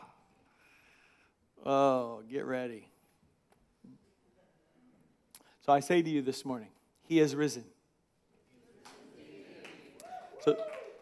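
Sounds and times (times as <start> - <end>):
speech: 1.6 - 2.9, 5.6 - 7.8, 10.4 - 10.7
crowd golf clap: 8.8 - 11.0.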